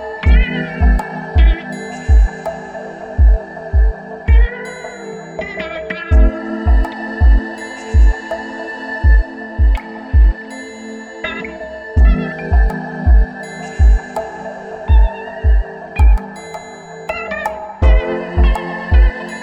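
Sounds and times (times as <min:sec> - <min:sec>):
chill guitar beat: 0:00.0 - 0:19.4.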